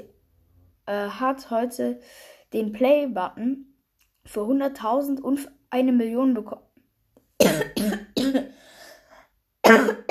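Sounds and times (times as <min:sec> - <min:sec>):
speech: 0:00.9 - 0:06.6, 0:07.4 - 0:08.0
person coughing after choking on something swallowed: 0:07.4 - 0:08.7, 0:09.6 - 0:10.1.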